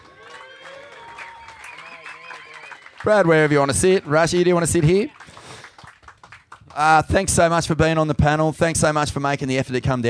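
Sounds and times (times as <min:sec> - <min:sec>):
overlapping voices and cheers: 0:00.0 - 0:05.2
crowd applause: 0:00.0 - 0:07.3
speech: 0:03.0 - 0:05.2, 0:06.8 - 0:10.0.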